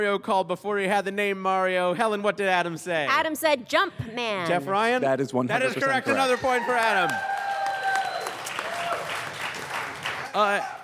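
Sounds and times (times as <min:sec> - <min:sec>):
speech: 0:00.0 - 0:07.3, 0:10.3 - 0:10.8
audience cheering and applause: 0:06.0 - 0:10.8.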